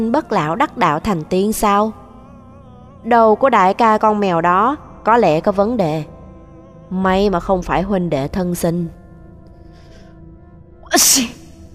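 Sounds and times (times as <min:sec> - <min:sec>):
speech: 0:00.0 - 0:02.0, 0:03.0 - 0:06.1, 0:06.9 - 0:09.0, 0:10.9 - 0:11.4
person sneezing: 0:10.9 - 0:11.4.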